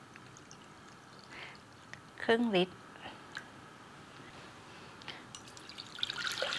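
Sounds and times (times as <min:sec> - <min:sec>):
coconut water poured through a strainer: 0:00.0 - 0:02.0, 0:05.3 - 0:06.5
speech: 0:02.3 - 0:02.8.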